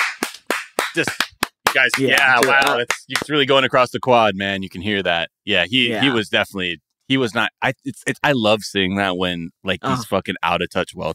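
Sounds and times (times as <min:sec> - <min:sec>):
sparse claps from people on stage: 0:00.0 - 0:03.4
speech: 0:01.0 - 0:11.1.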